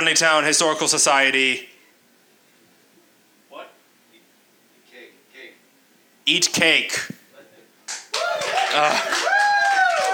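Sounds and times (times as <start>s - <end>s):
speech: 0.0s - 1.7s, 6.3s - 7.2s, 8.2s - 9.2s
audience applause: 7.9s - 10.1s.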